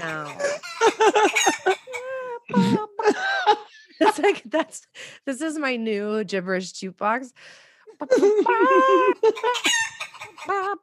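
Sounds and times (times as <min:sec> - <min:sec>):
speech: 0:00.0 - 0:01.6, 0:05.4 - 0:10.8
chicken clucking: 0:00.0 - 0:02.0, 0:09.2 - 0:10.8
laughter: 0:00.1 - 0:04.8, 0:08.0 - 0:10.8.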